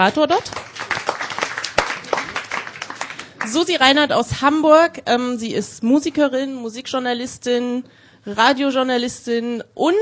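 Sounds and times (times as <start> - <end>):
speech: 0.0 - 0.7, 3.5 - 10.0
short sparse applause for a studio guest: 0.5 - 3.6.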